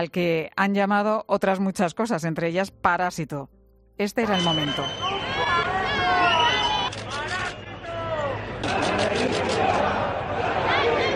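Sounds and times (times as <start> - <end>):
speech: 0.0 - 5.1
crowd whistling: 4.3 - 10.0
crowd booing: 4.8 - 11.1.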